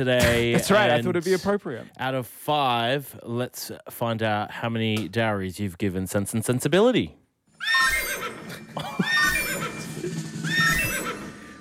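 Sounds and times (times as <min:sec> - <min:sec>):
speech: 0:00.0 - 0:07.8, 0:08.8 - 0:09.0
horse neighing: 0:07.6 - 0:11.5.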